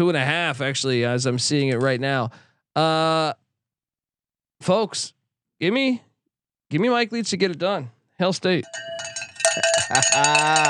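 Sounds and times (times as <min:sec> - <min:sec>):
speech: 0:00.0 - 0:03.4, 0:04.6 - 0:06.1, 0:06.7 - 0:10.6
cowbell ringing: 0:08.6 - 0:10.6.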